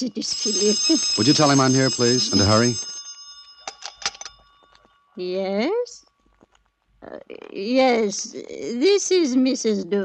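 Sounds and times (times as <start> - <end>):
speech: 0.0 - 2.9, 5.2 - 6.0, 7.0 - 10.0
telephone ringing: 0.0 - 4.8.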